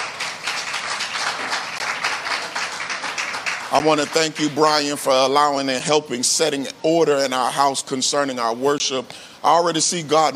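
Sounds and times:
audience hand clapping: 0:00.0 - 0:05.1
speech: 0:03.7 - 0:10.3.

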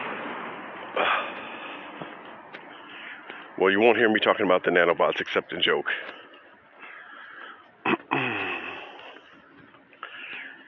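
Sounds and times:
speech: 0:01.0 - 0:01.3, 0:03.6 - 0:06.2
person coughing: 0:07.8 - 0:08.8.

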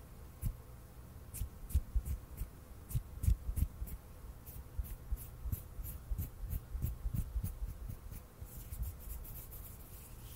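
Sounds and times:
faint steady hum: 0:00.0 - 0:10.3
hands rubbing and scratching: 0:04.5 - 0:10.3.

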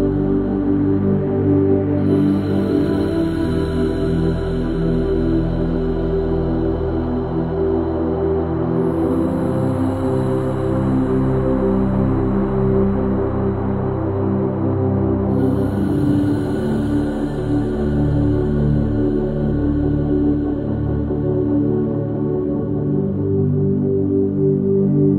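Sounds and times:
delta sleep binaural beats low drone: 0:00.0 - 0:25.1.

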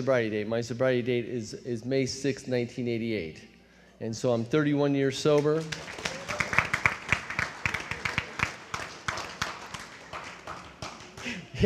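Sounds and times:
speech: 0:00.0 - 0:06.1
audience applause: 0:05.6 - 0:11.4.

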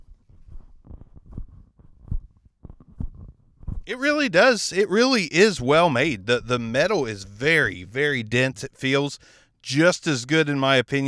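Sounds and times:
microphone handling noise, shuffled between hands: 0:00.0 - 0:03.9
speech: 0:03.9 - 0:11.0.

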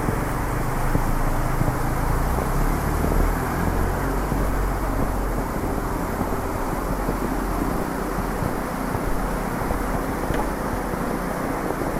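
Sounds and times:
flowing water of a snowy river: 0:00.0 - 0:11.9
wind at a snowy riverside: 0:00.0 - 0:11.9
faint ticks and small bumps: 0:04.3 - 0:11.1.

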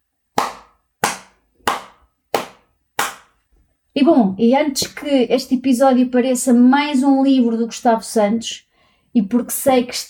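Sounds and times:
single person clapping: 0:00.4 - 0:03.3
speech: 0:04.0 - 0:10.0.

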